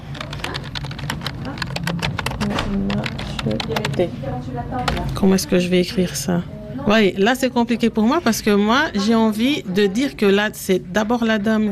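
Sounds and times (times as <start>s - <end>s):
rapid typing on a computer keyboard: 0.0s - 4.1s
speech: 2.7s - 11.6s.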